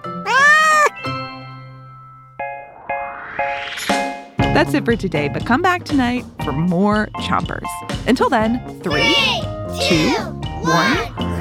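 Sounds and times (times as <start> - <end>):
cat meowing: 0.2 - 1.0
speech: 4.6 - 11.3.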